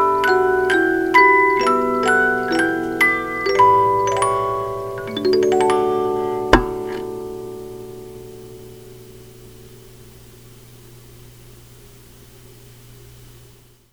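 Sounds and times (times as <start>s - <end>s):
melody of 50 notes: 0.0s - 10.2s.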